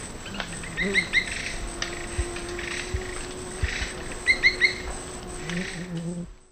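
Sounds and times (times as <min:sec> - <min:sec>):
Dendrocincla merula calls or song in the Eastern Lowlands of South America: 0:00.2 - 0:02.9, 0:03.7 - 0:06.1.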